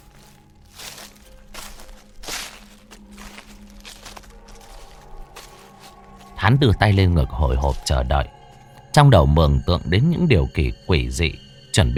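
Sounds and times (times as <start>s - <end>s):
footsteps crunching on dry leaves: 0.0s - 8.8s
speech: 6.4s - 8.4s, 9.0s - 11.9s.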